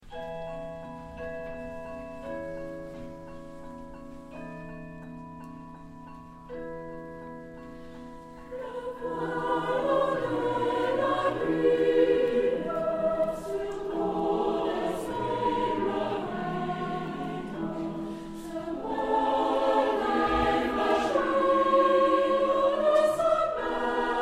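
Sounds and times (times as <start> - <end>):
choir singing: 8.5 - 24.2.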